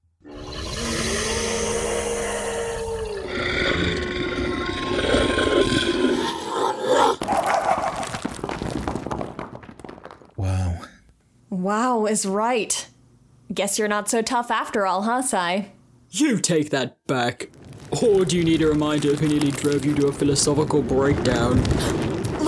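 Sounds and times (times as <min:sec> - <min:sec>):
vampire dog attack roaring: 0:00.2 - 0:07.2
crashing impact and rough noisy rumble: 0:07.2 - 0:10.3, 0:17.5 - 0:22.4
speech: 0:11.7 - 0:12.9, 0:13.5 - 0:22.0.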